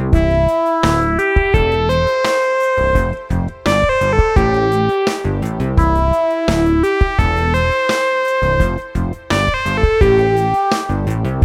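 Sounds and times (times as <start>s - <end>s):
simple triplet melodies in C major: 0.1s - 11.2s.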